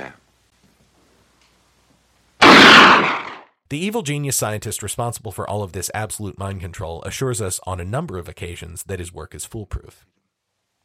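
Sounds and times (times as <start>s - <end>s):
gunshot from a film scene: 2.4s - 3.5s
speech: 3.7s - 10.2s.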